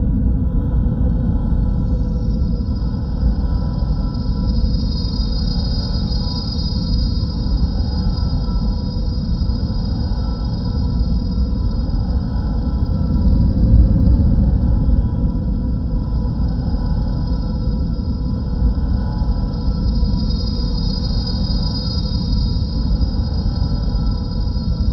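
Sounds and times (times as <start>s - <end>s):
ship: 0.0s - 24.9s.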